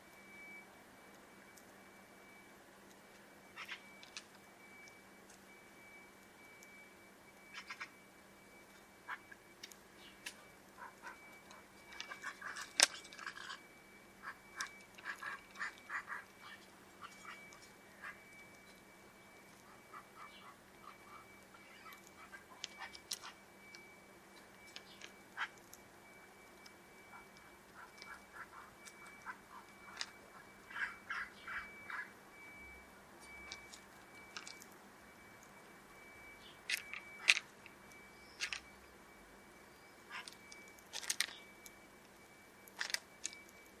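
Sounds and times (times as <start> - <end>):
faint steady tone: 0.0 - 43.7
bird calling: 3.4 - 5.0, 7.4 - 8.1, 9.0 - 24.0, 24.6 - 34.6, 39.6 - 41.7.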